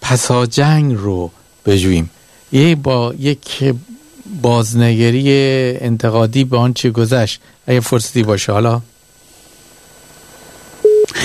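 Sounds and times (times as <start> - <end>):
faint low hiss: 0.0 - 11.2
speech: 0.1 - 8.9
telephone busy signal after a caller hung up: 10.8 - 11.2.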